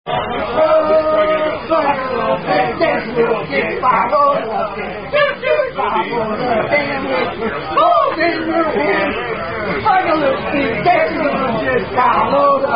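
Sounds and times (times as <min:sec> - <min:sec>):
song chorus: 0:00.1 - 0:12.7.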